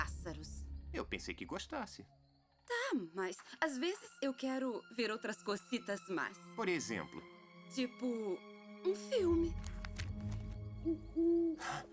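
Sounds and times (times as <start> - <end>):
speech: 0.2 - 11.9
owl hooting: 10.8 - 11.9.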